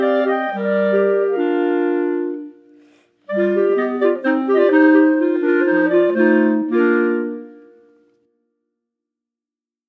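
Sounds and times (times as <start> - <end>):
clarinets playing polka: 0.0 - 2.6, 3.3 - 7.6.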